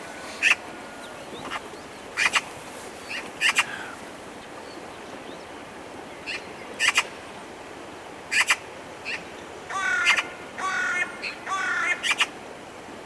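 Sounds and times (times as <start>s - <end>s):
Eurasian magpie harsh calls: 0.1s - 4.0s, 9.7s - 12.2s.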